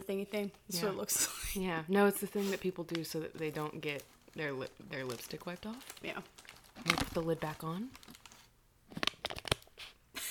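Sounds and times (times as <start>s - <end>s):
speech: 0.1s - 8.0s
snack cracker bag rustling: 2.4s - 10.0s.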